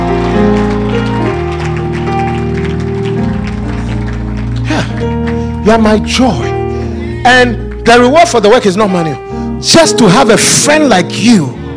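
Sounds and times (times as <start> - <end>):
audience clapping: 0.0 - 6.5
speech: 5.7 - 6.6, 7.2 - 11.6.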